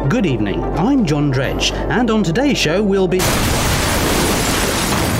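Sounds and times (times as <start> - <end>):
speech: 0.2 - 3.7
tractor crashing through a wall: 3.2 - 5.1.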